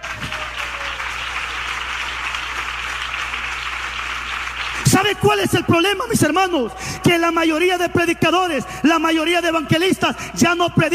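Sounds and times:
audience clapping: 0.0s - 6.0s
speech: 4.9s - 10.9s.

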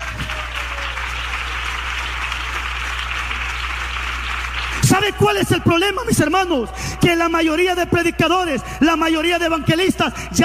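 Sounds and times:
audience clapping: 0.0s - 6.0s
speech: 5.0s - 10.4s.

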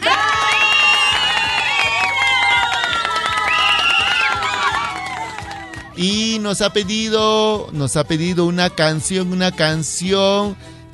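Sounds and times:
crowd cheering and shouting with whoops: 0.0s - 6.0s
speech: 6.0s - 10.8s.

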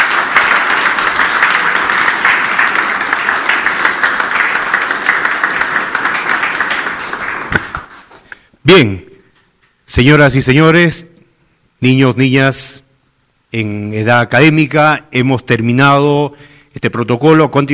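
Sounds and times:
audience applause: 0.0s - 8.2s
speech: 8.7s - 8.9s, 10.0s - 11.1s, 11.8s - 12.8s, 13.5s - 17.7s.

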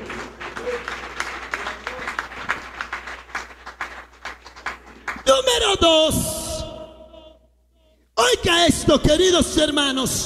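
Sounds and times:
audience applause: 0.0s - 5.3s
speech: 5.4s - 6.3s, 8.4s - 10.2s.

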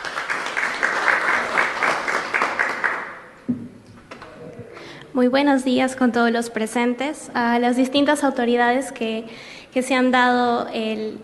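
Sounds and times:
audience applause at an agricultural fair ceremony: 0.0s - 3.2s
speech: 5.2s - 11.2s.

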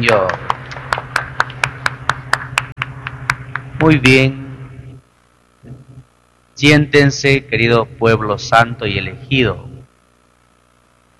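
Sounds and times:
speech: 0.0s - 0.5s, 3.8s - 4.4s, 6.6s - 9.7s
congregation clapping together during a Catholic Mass after the Gospel reading: 0.0s - 4.2s.

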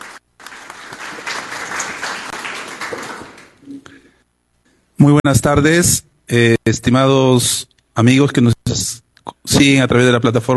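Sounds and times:
audience applause: 0.0s - 3.6s
speech: 5.0s - 10.5s.

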